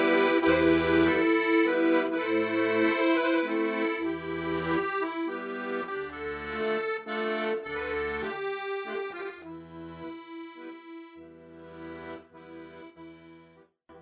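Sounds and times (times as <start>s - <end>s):
Greek song: 0.0s - 11.2s.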